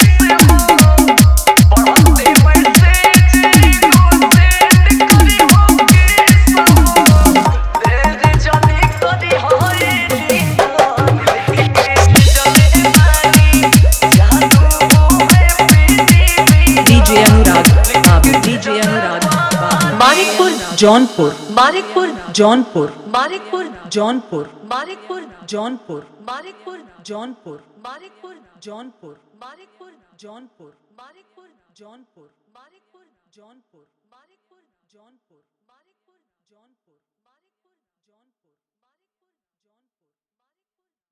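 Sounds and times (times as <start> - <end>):
romantic New Year DJ remix with hard dholak and bass: 0.0 - 22.5.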